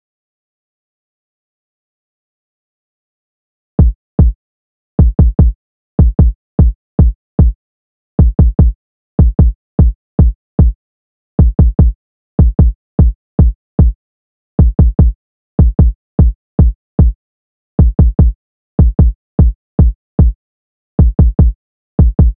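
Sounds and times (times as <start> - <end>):
kick drum: 3.8 - 4.4, 5.0 - 7.6, 8.2 - 10.8, 11.4 - 14.0, 14.6 - 17.2, 17.8 - 20.4, 21.0 - 22.3.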